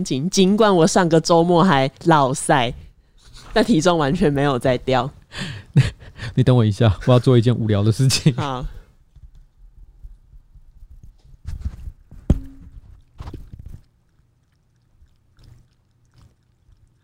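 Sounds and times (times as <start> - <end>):
speech: 0.0 - 2.8, 3.6 - 8.8
dog lapping water: 12.7 - 17.0.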